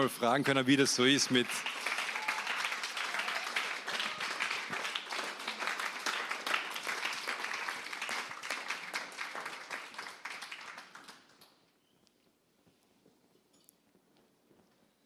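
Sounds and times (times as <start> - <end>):
speech: 0.0 - 1.9
audience applause: 0.6 - 11.5.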